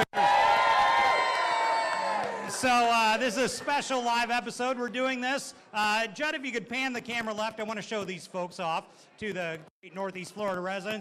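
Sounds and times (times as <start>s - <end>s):
boisterous crowd cheering at Brothers Patty Shack wrestling-themed show: 0.0s - 3.9s
speech: 2.6s - 11.0s.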